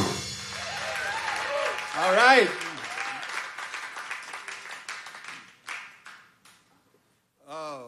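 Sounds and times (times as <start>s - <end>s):
audience applause: 0.4s - 6.3s
speech: 2.0s - 2.6s.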